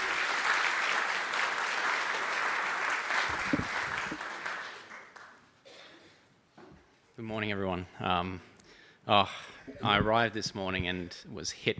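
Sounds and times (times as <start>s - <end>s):
crowd clapping: 0.0s - 5.5s
speech: 7.3s - 8.5s, 9.1s - 11.7s.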